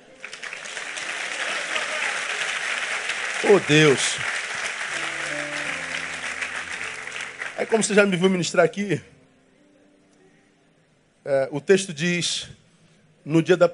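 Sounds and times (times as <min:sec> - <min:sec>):
audience applause: 0:00.0 - 0:08.4
speech: 0:03.4 - 0:04.4, 0:07.6 - 0:09.1, 0:11.3 - 0:12.6, 0:13.2 - 0:13.7.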